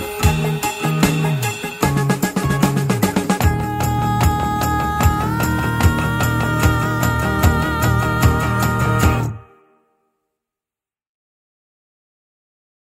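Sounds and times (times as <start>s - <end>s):
blues music: 0.0s - 9.7s.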